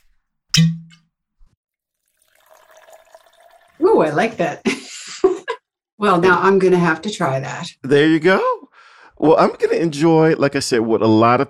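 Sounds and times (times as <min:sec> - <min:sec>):
bottle of water cracked open with a pop: 0:00.0 - 0:01.0
water pouring: 0:01.8 - 0:04.6
speech: 0:04.0 - 0:04.8, 0:06.0 - 0:08.6, 0:09.2 - 0:11.4.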